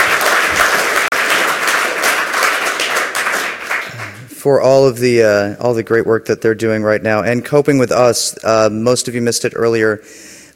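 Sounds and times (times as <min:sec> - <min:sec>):
crowd applause: 0:00.0 - 0:04.3
speech: 0:04.4 - 0:10.4.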